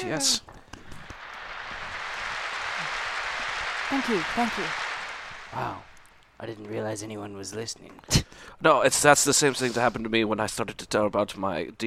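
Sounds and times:
speech: 0:00.0 - 0:00.5, 0:03.9 - 0:04.8, 0:05.5 - 0:11.8
smattering of applause from the camp: 0:00.8 - 0:06.4.

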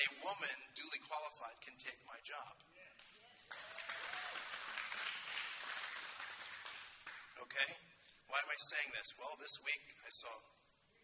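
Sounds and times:
speech: 0:00.3 - 0:02.8, 0:07.6 - 0:10.6
audience applauding: 0:03.0 - 0:07.4.

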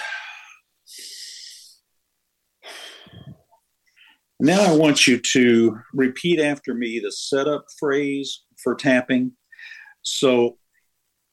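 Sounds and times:
person taking slow breaths during a tapping session: 0:00.0 - 0:01.8, 0:02.6 - 0:04.3, 0:09.5 - 0:10.0
speech: 0:04.4 - 0:10.6.

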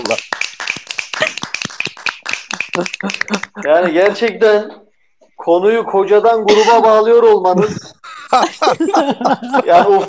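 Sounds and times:
applause: 0:00.0 - 0:04.3
laughter: 0:02.5 - 0:04.6, 0:06.5 - 0:10.0
speech: 0:02.8 - 0:04.8, 0:05.4 - 0:10.0.

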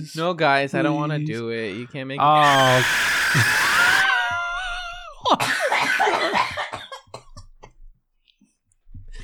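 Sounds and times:
speech: 0:00.0 - 0:03.6
voice imitating a pterodactyl screech: 0:02.3 - 0:04.2
person laughing and coughing: 0:04.7 - 0:07.8.

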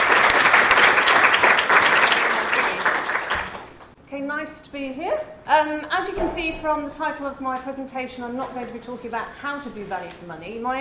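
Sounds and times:
audience applause: 0:00.0 - 0:03.9
speech: 0:04.4 - 0:10.7.

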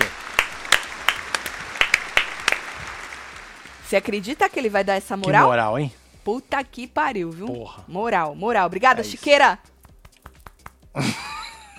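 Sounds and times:
applause: 0:00.0 - 0:04.8, 0:10.0 - 0:10.8
speech: 0:03.9 - 0:09.7, 0:11.0 - 0:11.2
laughter: 0:11.0 - 0:11.7.

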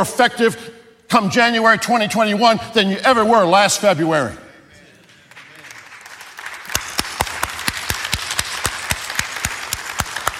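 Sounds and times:
speech: 0:00.0 - 0:04.4
sharp steady hand claps: 0:05.3 - 0:10.3.

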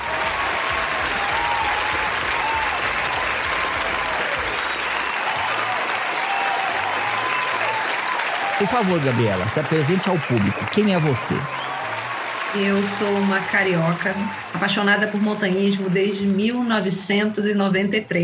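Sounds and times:
applause: 0:00.0 - 0:16.8
speech: 0:08.6 - 0:11.6, 0:12.5 - 0:18.2.

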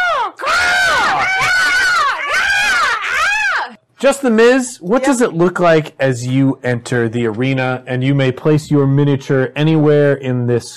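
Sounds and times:
single voice imitating an arena crowd going wild: 0:00.0 - 0:03.8
speech: 0:04.0 - 0:10.7.

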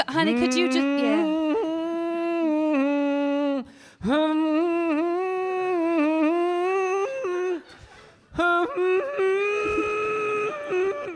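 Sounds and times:
speech: 0:00.0 - 0:01.3, 0:04.0 - 0:04.5
person humming a slow soothing tune: 0:00.3 - 0:07.8, 0:08.4 - 0:11.1.

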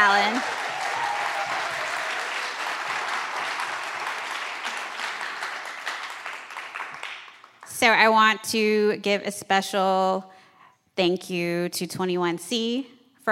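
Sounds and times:
speech: 0:00.0 - 0:00.6, 0:07.9 - 0:10.3, 0:11.0 - 0:13.3
audience applause: 0:00.0 - 0:07.7.

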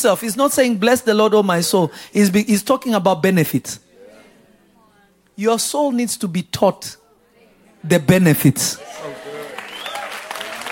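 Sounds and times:
speech: 0:00.0 - 0:03.8, 0:05.4 - 0:07.0, 0:07.8 - 0:09.2
audience clapping: 0:08.8 - 0:10.7.

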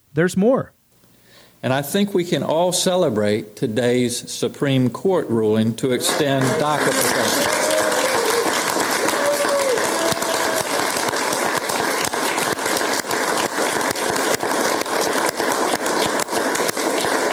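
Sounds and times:
speech: 0:00.2 - 0:00.8, 0:01.6 - 0:07.4
audience applause: 0:05.9 - 0:17.3.

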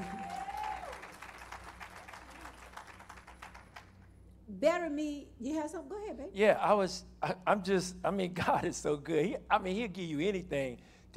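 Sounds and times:
audience applause: 0:00.0 - 0:03.9
speech: 0:04.6 - 0:11.1.

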